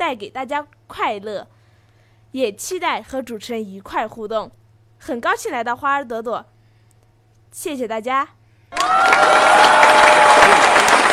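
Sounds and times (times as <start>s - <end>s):
speech: 0.0s - 1.6s, 2.3s - 6.5s, 7.5s - 10.7s
audience applause for a performer on a children's television show: 8.7s - 11.1s.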